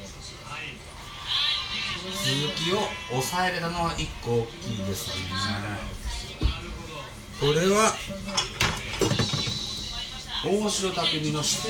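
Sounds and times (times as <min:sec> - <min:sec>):
speech: 0:02.0 - 0:06.0, 0:07.4 - 0:08.7, 0:10.4 - 0:11.6
dishes and cutlery clattering while being washed: 0:08.3 - 0:09.8.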